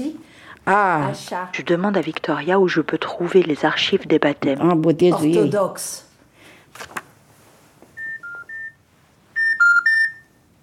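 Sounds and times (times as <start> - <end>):
speech: 0.6 - 6.1
telephone keypad dialing tones: 8.0 - 8.8, 9.4 - 10.3.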